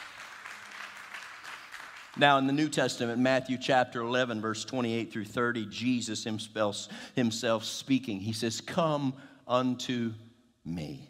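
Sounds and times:
crowd clapping: 0.0 - 2.6
speech: 2.2 - 11.0.

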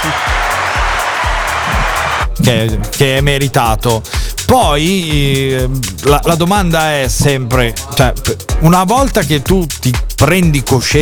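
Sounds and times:
applause sound effect: 0.0 - 2.4
speech: 2.4 - 11.0.

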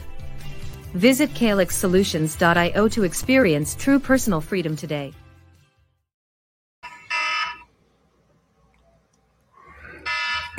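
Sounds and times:
speech: 0.9 - 5.2
mobile phone ringing: 6.8 - 7.7, 10.1 - 10.5.

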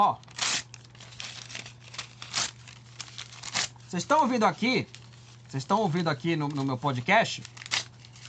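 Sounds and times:
speech: 0.0 - 0.3, 3.9 - 7.6
sheet of notebook paper being torn: 0.0 - 5.4, 7.4 - 8.2.

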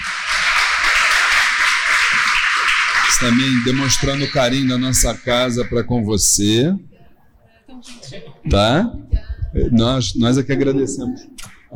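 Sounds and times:
crowd applauding: 0.0 - 6.0
speech: 3.1 - 6.9, 8.5 - 11.7.

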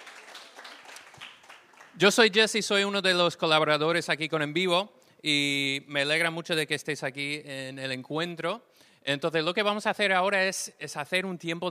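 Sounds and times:
group applause: 0.0 - 2.4
speech: 2.0 - 11.7.

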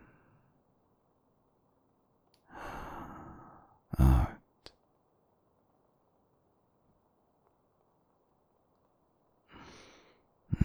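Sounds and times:
slow soft inhale: 2.5 - 4.4, 9.5 - 10.6
speech: 4.0 - 4.4.

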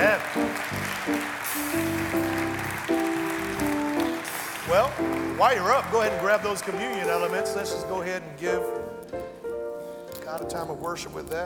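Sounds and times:
audience clapping hands: 0.0 - 8.3
speech: 4.7 - 9.4, 10.3 - 11.4.

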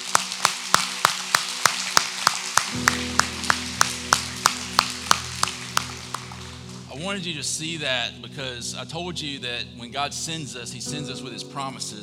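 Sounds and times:
audience clapping: 0.0 - 7.0
speech: 2.7 - 3.0, 7.0 - 12.0
low musical tone: 2.8 - 12.0.

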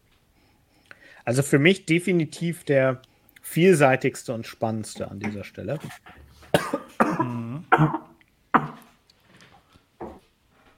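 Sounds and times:
speech: 1.3 - 8.0
person coughing after choking on water: 5.0 - 8.9.

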